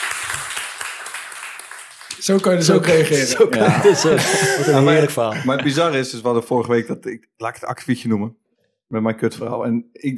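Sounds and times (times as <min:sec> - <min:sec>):
applause: 0:00.0 - 0:03.3
speech: 0:02.2 - 0:10.1
laughter: 0:02.9 - 0:06.1.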